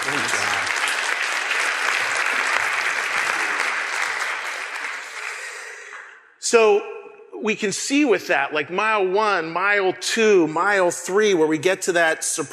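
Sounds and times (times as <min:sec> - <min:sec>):
audience applause: 0:00.0 - 0:05.9
speech: 0:06.5 - 0:12.5.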